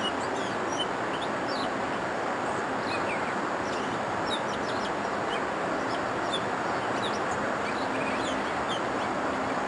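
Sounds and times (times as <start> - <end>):
gray catbird song: 0.0 - 9.5.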